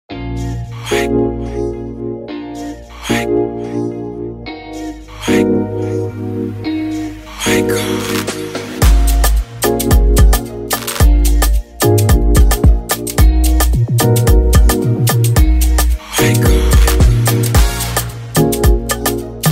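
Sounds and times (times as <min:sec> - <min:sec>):
afrobeat instrumental music: 0:00.1 - 0:19.5.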